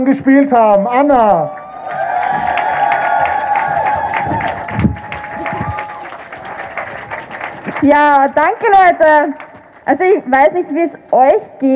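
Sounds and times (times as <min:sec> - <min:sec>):
speech: 0:00.0 - 0:01.6, 0:07.8 - 0:11.7
crowd applauding and cheering at a rally: 0:01.3 - 0:09.9.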